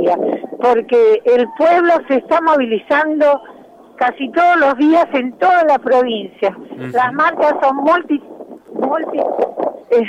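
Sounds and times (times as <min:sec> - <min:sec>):
wind buffeting the microphone outdoors during a street march: 0:00.0 - 0:02.4, 0:03.3 - 0:10.0
speech: 0:00.0 - 0:10.0.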